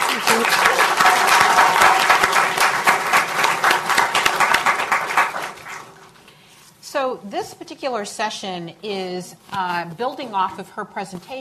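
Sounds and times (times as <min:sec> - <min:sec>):
audience applause: 0:00.0 - 0:06.0
speech: 0:07.4 - 0:11.3.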